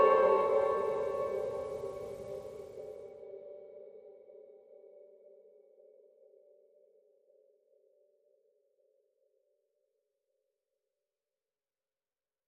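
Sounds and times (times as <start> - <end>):
suspense music: 0.0 - 3.0.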